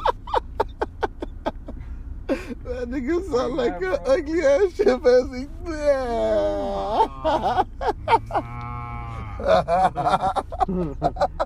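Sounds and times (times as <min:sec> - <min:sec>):
laughter: 0:00.0 - 0:11.4
speech: 0:02.4 - 0:08.6, 0:09.4 - 0:11.4
cow mooing: 0:08.0 - 0:09.5.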